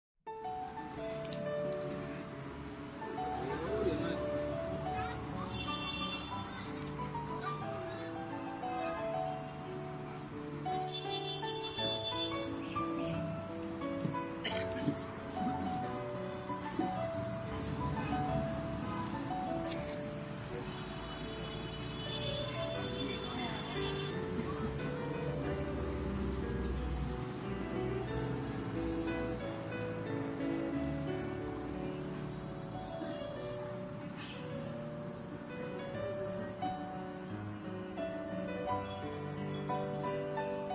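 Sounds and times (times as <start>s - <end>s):
background music: 0.3s - 40.7s.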